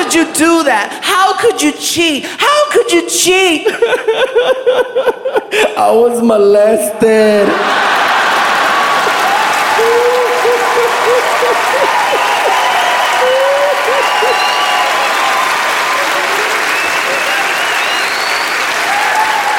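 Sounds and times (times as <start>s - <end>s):
speech: 0.1s - 7.8s
scattered laughter: 3.7s - 5.5s, 10.1s - 12.6s
audience applause: 7.6s - 19.5s
whoops rising above the clapping: 9.0s - 19.5s.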